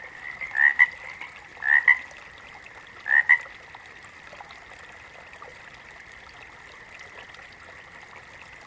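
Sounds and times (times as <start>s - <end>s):
water frog giving brief paired croaks: 0.1s - 2.1s, 3.0s - 3.5s.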